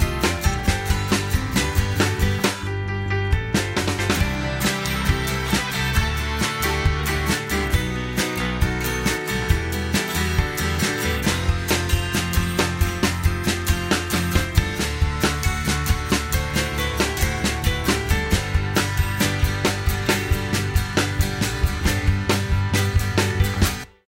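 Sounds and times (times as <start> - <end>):
band playing short karaoke music: 0.0 - 23.8.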